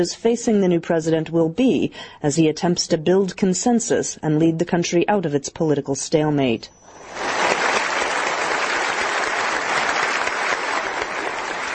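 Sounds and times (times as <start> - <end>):
speech: 0.0 - 7.5
rousing applause: 7.0 - 11.7.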